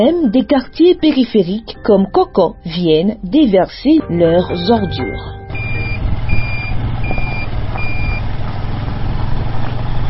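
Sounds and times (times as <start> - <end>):
speech: 0.0 - 5.4
crane working at garbage dump: 5.5 - 10.0.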